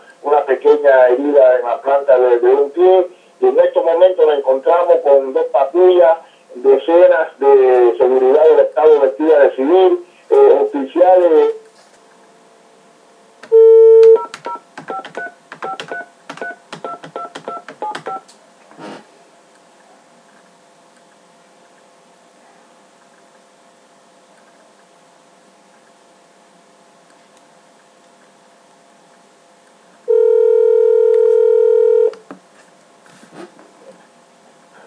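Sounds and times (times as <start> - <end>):
speech: 0.5 - 11.6
phone redialing tones after dropped call: 13.5 - 18.3, 30.1 - 32.2.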